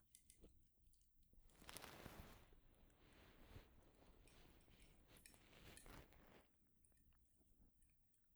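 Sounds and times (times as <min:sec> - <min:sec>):
ear cleaning in the right ear: 0:01.4 - 0:06.4.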